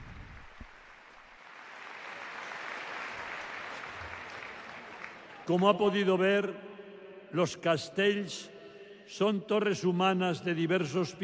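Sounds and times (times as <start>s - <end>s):
audience applause: 0.0s - 5.7s
speech: 5.5s - 6.7s, 7.3s - 8.5s, 9.1s - 11.2s.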